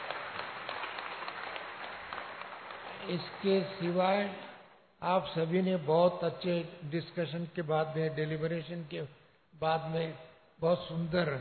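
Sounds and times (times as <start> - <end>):
audience clapping: 0.0 - 4.5
speech: 3.1 - 11.3.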